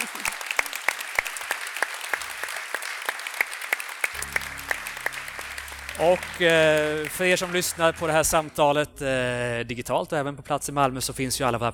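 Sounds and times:
laughter: 0.0 - 0.4
audience applause: 0.0 - 8.6
speech: 6.0 - 11.7.

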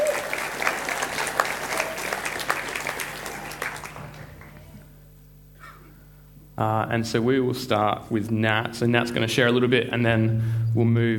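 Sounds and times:
audience applause: 0.0 - 4.8
speech: 6.6 - 11.1.

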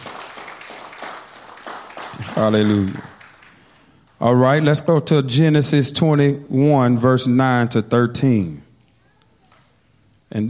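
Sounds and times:
audience clapping: 0.0 - 4.4
speech: 2.4 - 3.1, 4.2 - 8.6.

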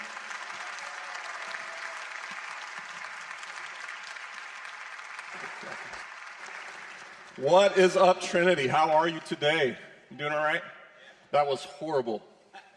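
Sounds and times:
audience applauding a guest speaker at a Sunday church service: 0.0 - 8.2
speech: 5.6 - 6.1, 7.4 - 12.3.

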